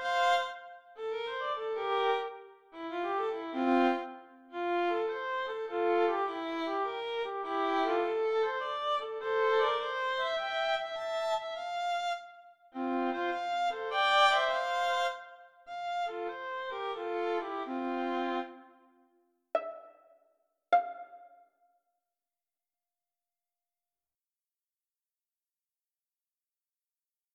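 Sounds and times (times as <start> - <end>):
solo violin piece: 0.0 - 18.8, 19.6 - 21.4.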